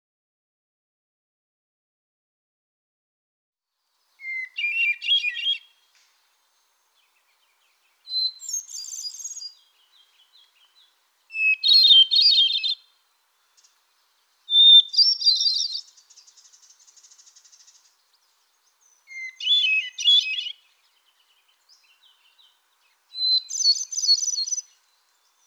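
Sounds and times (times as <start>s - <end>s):
solitaire whistling song: 4.2s - 5.7s, 8.0s - 12.9s, 14.5s - 17.8s, 19.0s - 24.8s.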